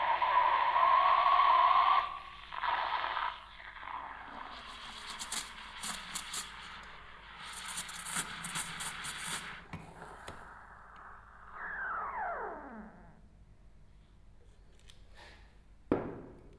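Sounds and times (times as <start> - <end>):
coffee machine: 0.0 - 11.8.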